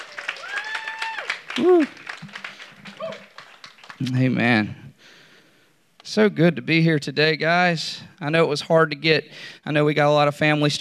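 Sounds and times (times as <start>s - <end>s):
audience hand clapping: 0.0s - 4.6s
speech: 1.6s - 2.3s, 4.0s - 4.8s, 6.1s - 10.7s.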